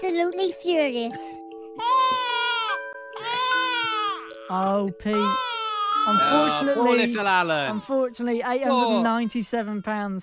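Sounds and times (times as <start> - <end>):
speech: 0.0 - 2.0, 4.5 - 10.2
baby crying sound effect: 1.8 - 7.3, 8.7 - 9.9.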